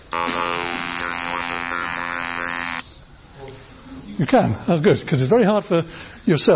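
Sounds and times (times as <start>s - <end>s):
faint room noise: 0.0s - 6.5s
handheld electrolarynx-style voice buzzer buzzing: 0.1s - 2.9s
speech: 4.2s - 6.5s.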